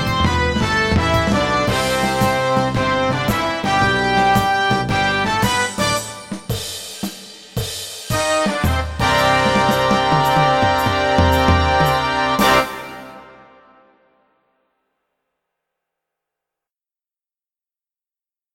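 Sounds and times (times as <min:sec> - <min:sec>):
drum kit playing a shuffle: 0:00.0 - 0:13.2.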